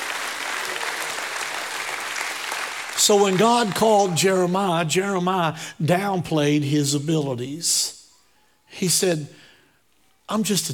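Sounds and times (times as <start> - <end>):
audience applause: 0.0 - 4.2
speech: 3.1 - 8.0, 8.7 - 9.4, 10.3 - 10.7.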